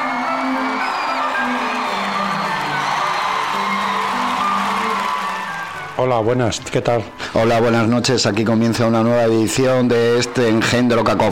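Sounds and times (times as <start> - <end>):
applause: 0.0 - 6.0
crowd cheering and whooping: 0.0 - 6.0
speech: 6.0 - 11.2.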